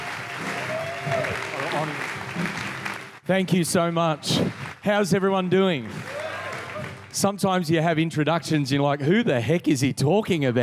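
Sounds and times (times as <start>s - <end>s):
audience applause welcoming a pastor to the stage at a church: 0.0s - 7.4s
speech: 1.8s - 2.6s, 3.3s - 6.1s, 7.1s - 10.6s.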